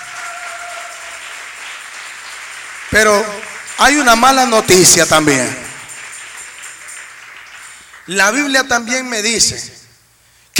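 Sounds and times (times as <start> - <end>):
congregation clapping at a church service: 0.0 - 9.6
speech: 2.9 - 5.6, 8.1 - 9.8.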